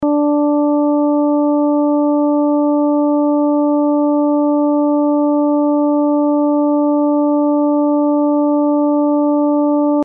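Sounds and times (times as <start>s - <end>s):
293.33 Hz tone: 0.0s - 10.0s.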